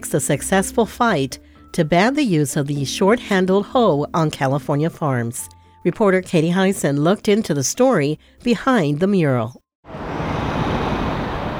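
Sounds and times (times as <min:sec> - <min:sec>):
speech: 0:00.0 - 0:09.6
cars passing on freeway above Chicano Park: 0:09.9 - 0:11.5.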